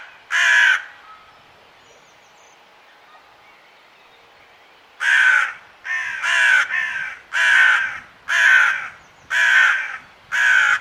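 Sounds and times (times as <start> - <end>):
bird giving harsh hoarse cawing calls: 0.0 - 1.0, 5.0 - 10.7.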